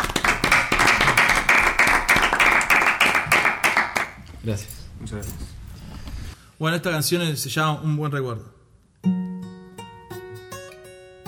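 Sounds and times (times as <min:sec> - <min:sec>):
audience applause for artists on a radio show: 0:00.0 - 0:04.2
speech: 0:04.4 - 0:05.5, 0:06.6 - 0:09.2.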